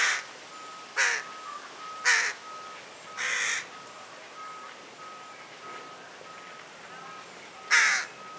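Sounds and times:
carrion crow Corvus corone giving harsh hoarse caws: 0:00.0 - 0:00.3, 0:01.0 - 0:01.3, 0:02.0 - 0:02.4, 0:03.2 - 0:03.7, 0:07.7 - 0:08.1.

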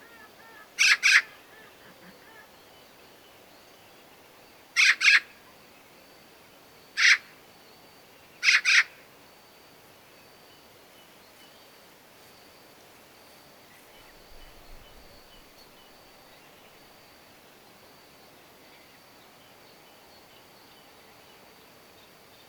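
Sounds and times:
Eurasian magpie Pica pica calling with harsh noisy rasps: 0:00.8 - 0:01.7, 0:04.8 - 0:05.3, 0:07.0 - 0:07.2, 0:08.4 - 0:08.9.

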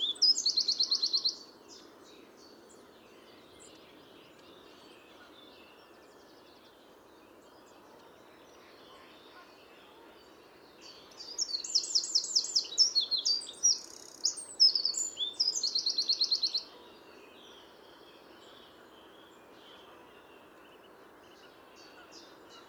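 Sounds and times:
Eurasian wren trilling song: 0:00.0 - 0:01.4, 0:10.9 - 0:16.7
quiet hiss: 0:00.0 - 0:22.6.

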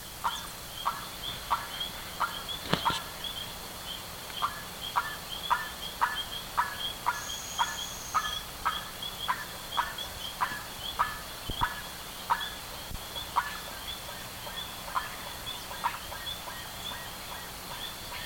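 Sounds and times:
bird harsh calls: 0:00.2 - 0:18.2
thin whistle: 0:07.2 - 0:08.4.

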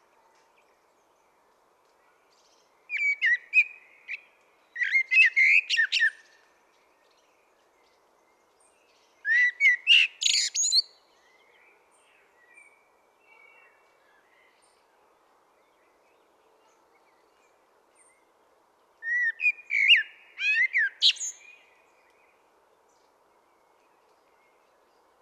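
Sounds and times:
common blackbird song: 0:02.9 - 0:06.4, 0:08.8 - 0:11.6, 0:19.0 - 0:22.2.

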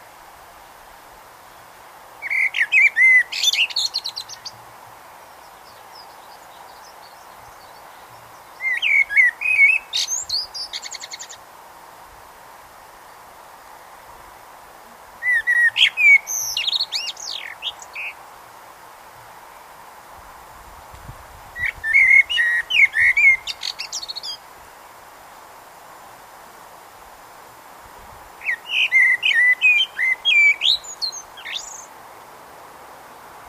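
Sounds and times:
background hiss: 0:00.0 - 0:33.4
common blackbird song: 0:02.2 - 0:04.7, 0:05.3 - 0:11.4, 0:15.2 - 0:18.2, 0:21.6 - 0:24.4, 0:28.4 - 0:32.0.

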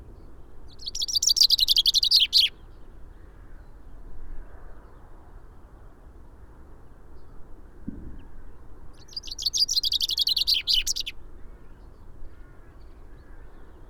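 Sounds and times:
Common chaffinch singing: 0:00.7 - 0:02.6, 0:09.0 - 0:11.2
soft thump: 0:07.8 - 0:08.2.

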